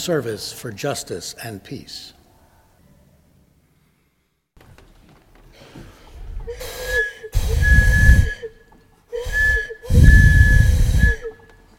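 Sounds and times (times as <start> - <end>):
speech: 0.0 - 2.2
train whistle blasts over breathy steam: 6.6 - 11.5.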